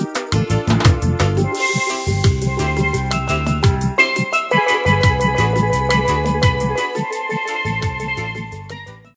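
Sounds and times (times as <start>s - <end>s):
steel: 0.2s - 9.0s.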